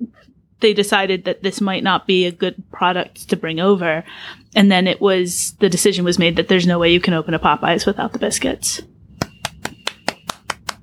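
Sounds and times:
speech: 0.6 - 8.9
single pair of hands clapping: 9.2 - 10.8.

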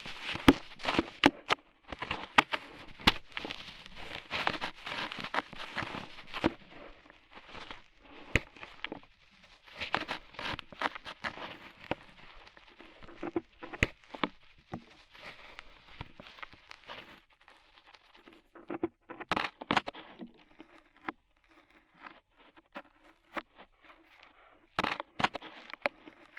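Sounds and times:
ear cleaning scratching with rhinestones and clay: 0.0 - 26.3.

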